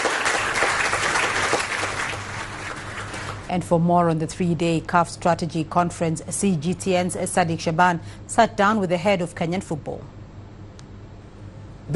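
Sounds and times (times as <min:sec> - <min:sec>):
crowd applauding: 0:00.0 - 0:03.5
speech: 0:03.5 - 0:10.2.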